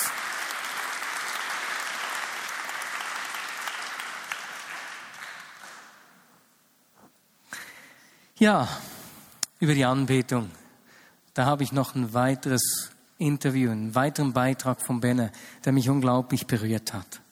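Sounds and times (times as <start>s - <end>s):
audience applause: 0.0s - 6.2s
speech: 8.4s - 8.9s, 9.6s - 10.6s, 11.4s - 17.2s.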